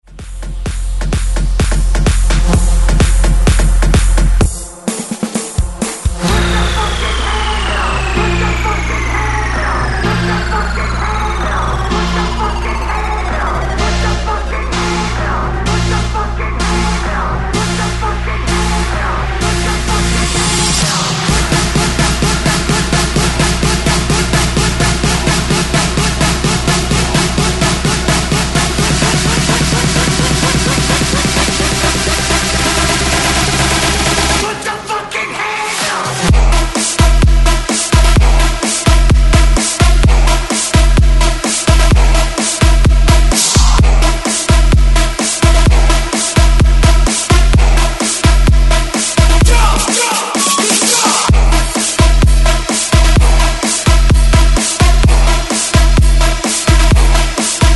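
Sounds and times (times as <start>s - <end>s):
breakbeat mix: 0.0s - 57.7s.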